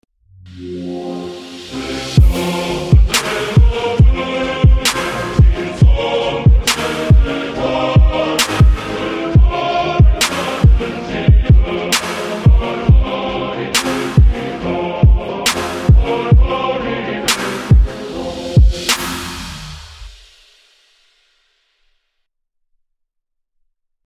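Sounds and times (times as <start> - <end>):
trap remix of a national anthem: 1.3 - 20.3.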